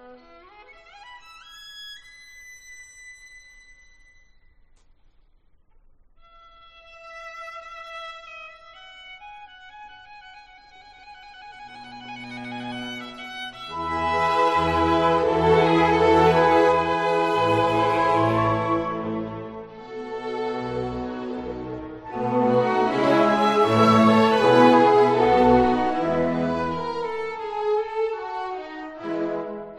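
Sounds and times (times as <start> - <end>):
adagio for violin and orchestra: 6.7 - 29.7.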